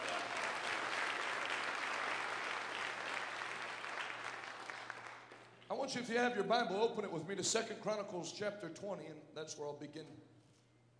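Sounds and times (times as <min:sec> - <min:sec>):
audience hand clapping: 0:00.0 - 0:05.7
speech: 0:05.7 - 0:10.3.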